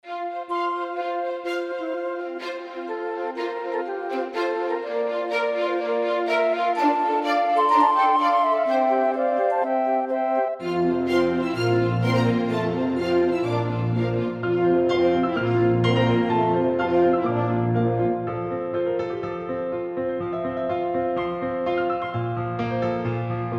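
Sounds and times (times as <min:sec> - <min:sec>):
mini piano concerto: 0:00.0 - 0:23.5.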